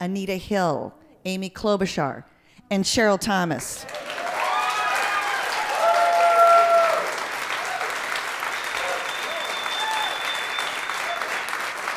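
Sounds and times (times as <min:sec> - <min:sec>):
speech: 0:00.0 - 0:04.2
people clapping: 0:03.7 - 0:11.9.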